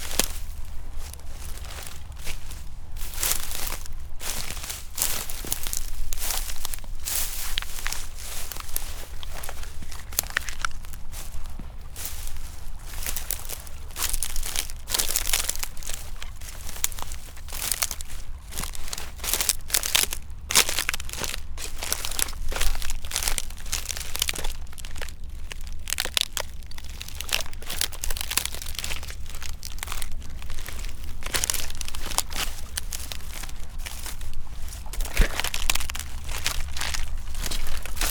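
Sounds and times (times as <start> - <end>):
footsteps on shore at Oxford Island, Lough Neagh: 0.0 - 38.0.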